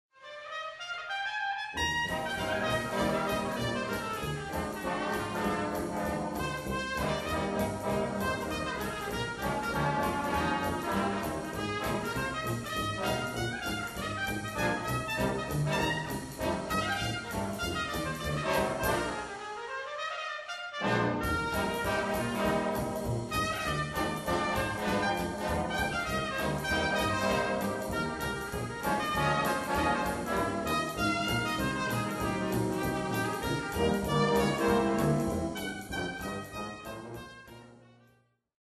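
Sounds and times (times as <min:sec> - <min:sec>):
swing music: 0:01.7 - 0:37.9.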